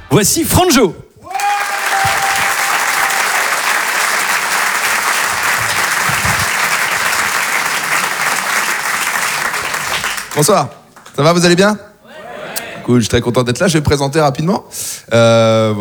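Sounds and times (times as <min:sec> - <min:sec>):
speech: 0:00.1 - 0:01.1, 0:10.4 - 0:11.9, 0:12.8 - 0:15.7
comedy club audience applause for a stand-up comedian: 0:01.3 - 0:11.2.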